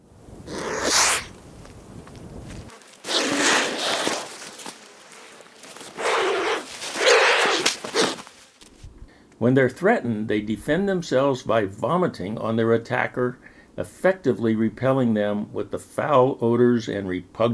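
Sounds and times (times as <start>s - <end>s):
vulture grunting and hissing: 0.4s - 1.3s, 3.0s - 4.7s, 5.8s - 8.3s
speech: 9.4s - 17.5s.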